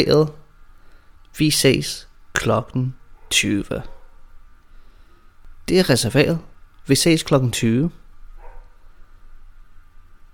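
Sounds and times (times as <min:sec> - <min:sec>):
speech: 0:00.0 - 0:00.4, 0:01.3 - 0:04.0, 0:05.7 - 0:08.0
low steady background hum: 0:00.0 - 0:10.3
faint dog bark: 0:03.2 - 0:04.2, 0:08.4 - 0:08.8.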